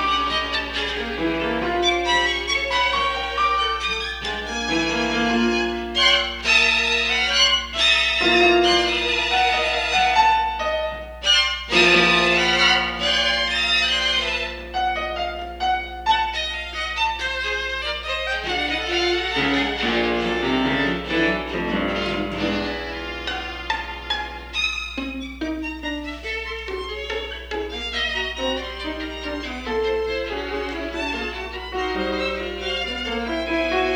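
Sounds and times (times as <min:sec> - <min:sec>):
piano and string quartet playing a quintet: 0:00.0 - 0:33.9.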